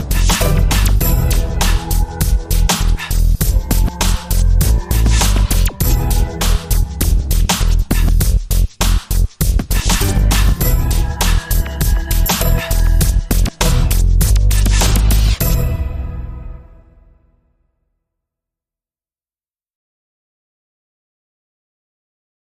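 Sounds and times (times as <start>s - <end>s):
R&B music: 0.0s - 17.5s.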